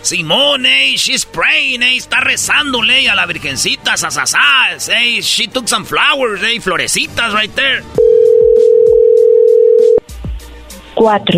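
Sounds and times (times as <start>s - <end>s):
speech: 0.0s - 8.0s, 11.0s - 11.3s
telephone call ringing unanswered: 8.0s - 10.0s.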